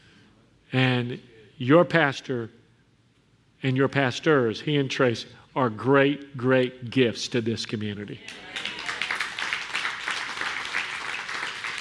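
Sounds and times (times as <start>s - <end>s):
speech: 1.0s - 2.6s, 3.6s - 8.7s
audience applause: 8.3s - 11.8s.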